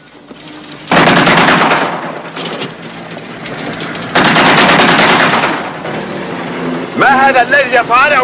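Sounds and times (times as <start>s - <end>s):
rapid gunfire warning shots: 0.9s - 2.7s, 3.5s - 5.9s
speech: 7.2s - 8.2s.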